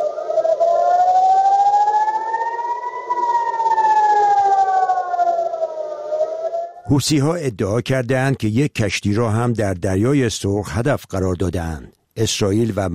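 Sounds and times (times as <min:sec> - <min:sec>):
air raid warning siren in central Israel and Tel Aviv: 0:00.0 - 0:06.9
speech: 0:06.9 - 0:12.9.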